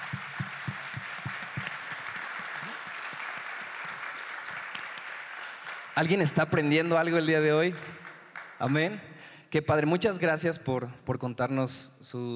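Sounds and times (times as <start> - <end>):
applause: 0.0 - 9.3
speech: 6.0 - 8.0, 8.6 - 12.3.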